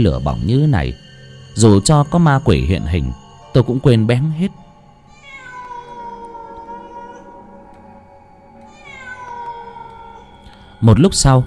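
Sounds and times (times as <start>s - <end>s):
speech: 0.0s - 4.6s, 10.8s - 11.4s
cat yowling like a crying child: 5.0s - 10.4s.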